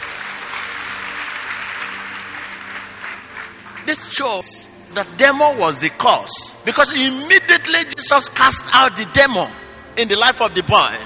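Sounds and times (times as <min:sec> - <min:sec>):
audience applause: 0:00.0 - 0:04.0
speech: 0:04.0 - 0:11.0.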